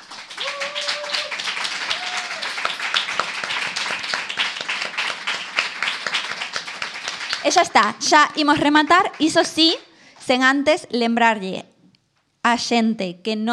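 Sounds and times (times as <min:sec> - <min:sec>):
loud audience applause: 0:00.0 - 0:09.8
whistle-like whoops: 0:00.4 - 0:02.5
speech: 0:07.4 - 0:11.7, 0:12.4 - 0:13.5.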